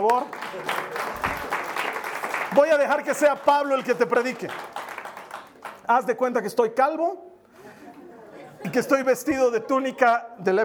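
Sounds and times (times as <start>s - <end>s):
speech: 0.0s - 0.8s, 2.6s - 4.8s, 5.9s - 7.3s, 8.7s - 10.6s
audience applause: 0.0s - 5.9s
laughter: 7.6s - 10.2s.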